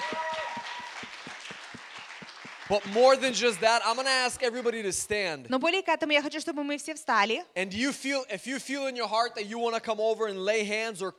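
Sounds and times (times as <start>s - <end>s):
audience applause: 0.0s - 4.9s
speech: 2.7s - 11.1s.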